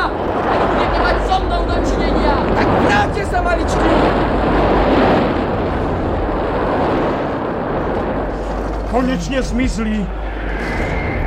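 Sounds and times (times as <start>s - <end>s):
ocean wave crashing: 0.0s - 11.2s
speech: 9.0s - 10.9s.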